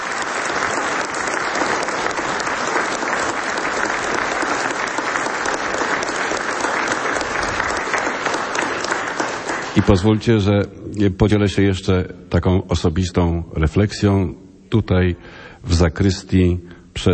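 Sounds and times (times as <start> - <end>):
audience applause: 0.0 - 10.3
speech: 9.8 - 17.1.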